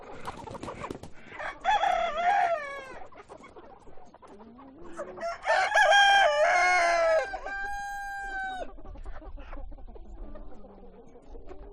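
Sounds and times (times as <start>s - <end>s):
chickens clucking at a chicken farm: 0.0s - 11.7s.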